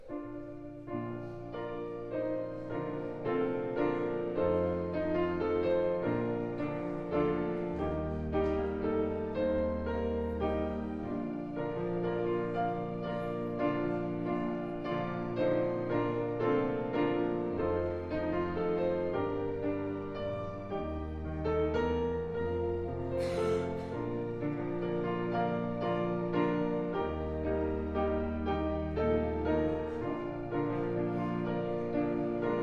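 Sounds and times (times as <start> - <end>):
prelude music: 0.0 - 32.6.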